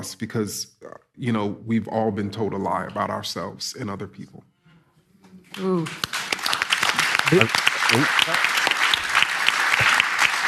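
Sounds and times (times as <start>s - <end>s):
speech: 0.0s - 4.5s, 5.6s - 6.2s, 7.3s - 8.6s
audience applause: 5.8s - 10.4s.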